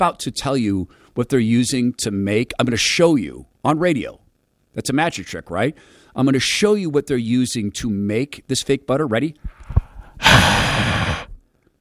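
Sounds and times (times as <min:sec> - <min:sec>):
speech: 0:00.0 - 0:04.2, 0:04.8 - 0:10.8
person exhaling: 0:09.7 - 0:11.4.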